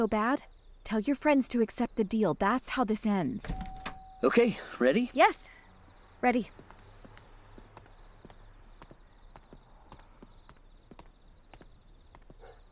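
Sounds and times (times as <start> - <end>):
speech: 0.0 - 5.6, 6.2 - 6.7
footsteps walking down a sidewalk: 6.5 - 12.7.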